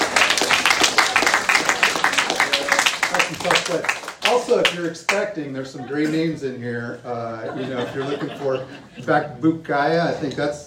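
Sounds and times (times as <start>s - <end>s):
audience applause: 0.0s - 4.9s
speech: 3.7s - 10.6s
laughter: 5.6s - 6.4s, 7.1s - 9.4s.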